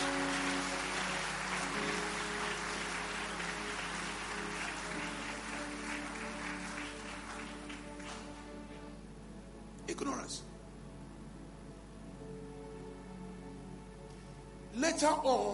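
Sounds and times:
audience clapping: 0.0 - 8.8
speech: 10.0 - 10.5, 15.0 - 15.5.

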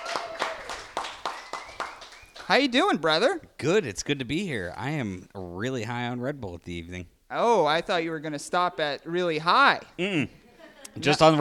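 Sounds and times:
audience applause: 0.0 - 2.6
speech: 2.5 - 11.3.

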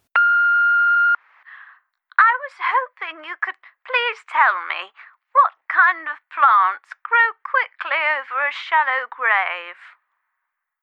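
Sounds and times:
answering machine beep: 0.2 - 1.2
speech: 2.5 - 10.0.

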